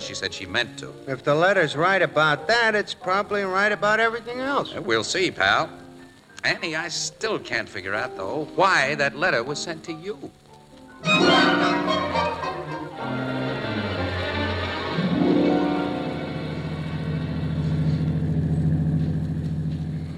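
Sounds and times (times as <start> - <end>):
speech: 0.1 - 5.8, 6.4 - 10.4
car engine driving slowly through fog: 11.9 - 20.1.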